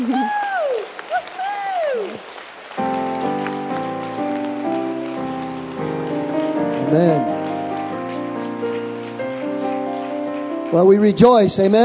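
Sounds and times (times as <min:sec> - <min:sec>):
whooping cheers: 0:00.0 - 0:02.2
applause: 0:00.0 - 0:11.8
sustained music chords: 0:02.8 - 0:11.8
speech: 0:06.9 - 0:07.3, 0:10.7 - 0:11.8.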